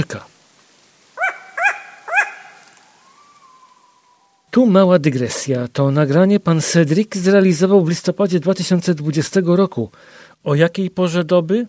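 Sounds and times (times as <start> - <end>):
long-eared owl alarm call: 1.2 - 4.5
speech: 4.5 - 11.6.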